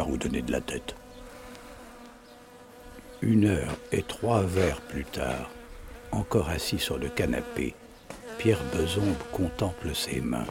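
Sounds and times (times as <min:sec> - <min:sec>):
houseflies buzzing in the house: 0:00.0 - 0:10.5
speech: 0:00.2 - 0:01.0, 0:03.2 - 0:10.5.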